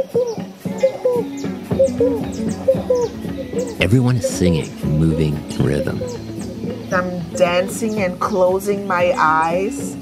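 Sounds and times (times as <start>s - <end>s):
frog calling: 0.8s - 8.3s
speech: 2.0s - 6.2s, 6.9s - 10.0s
high chirps from other creatures: 3.6s - 6.4s.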